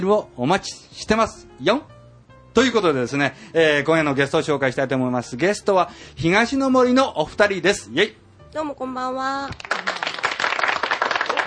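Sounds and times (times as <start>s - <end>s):
speech: 0.0s - 1.9s, 2.6s - 9.7s
radio studio audience clapping for arriving guests: 9.5s - 11.4s.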